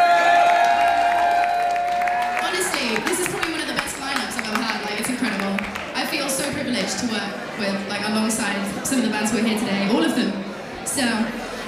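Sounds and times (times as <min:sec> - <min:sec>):
audience applause: 0:00.0 - 0:06.6
speech: 0:07.6 - 0:10.4, 0:11.0 - 0:11.4.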